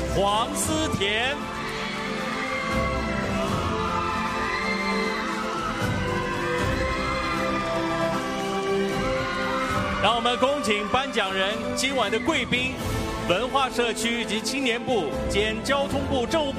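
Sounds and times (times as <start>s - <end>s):
audience applauding and cheering: 0.0s - 16.5s
upbeat music: 0.0s - 16.5s
speech: 0.2s - 1.6s, 10.0s - 16.5s.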